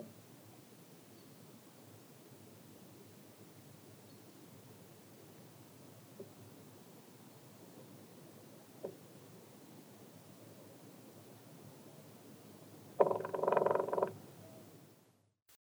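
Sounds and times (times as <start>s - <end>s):
grey-headed woodpecker calling: 13.0s - 14.7s.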